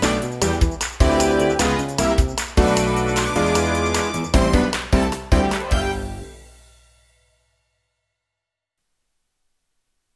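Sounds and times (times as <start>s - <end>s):
backing track: 0.0s - 6.6s.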